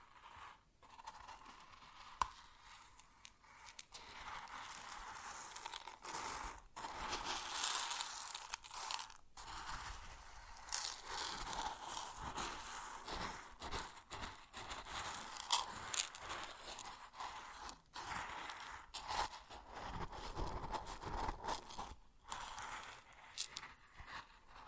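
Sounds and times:
grain sounds: 0:01.0 - 0:24.6.

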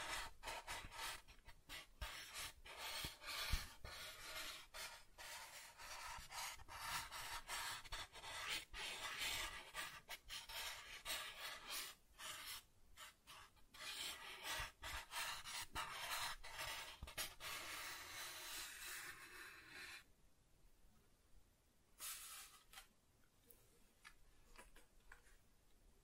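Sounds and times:
soft tracing across a surface: 0:00.0 - 0:20.1.

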